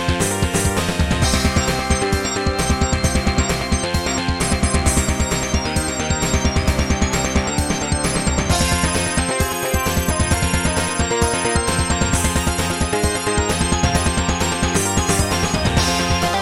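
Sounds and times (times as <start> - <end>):
wavetable synth: 0.2 - 16.3.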